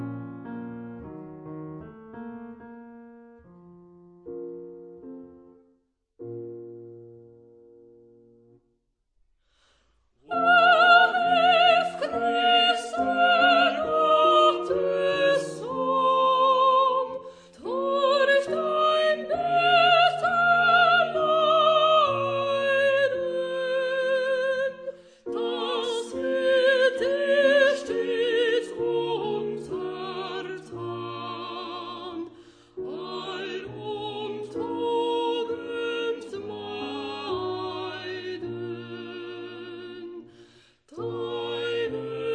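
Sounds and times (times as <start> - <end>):
soprano singing a hymn: 10.3 - 42.3.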